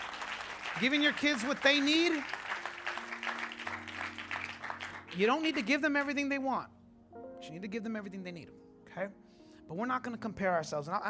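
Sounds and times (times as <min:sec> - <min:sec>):
crowd applause: 0:00.0 - 0:06.2
speech: 0:00.8 - 0:02.4, 0:05.2 - 0:06.8, 0:07.5 - 0:11.0.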